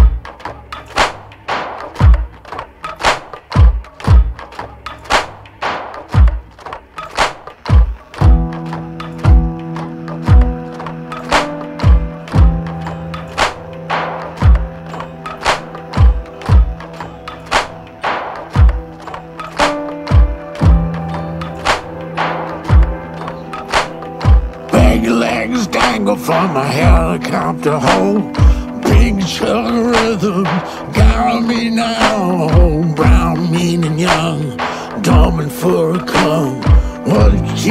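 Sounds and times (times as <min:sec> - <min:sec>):
new single music track playing: 0:00.0 - 0:37.6
speech: 0:27.6 - 0:28.4.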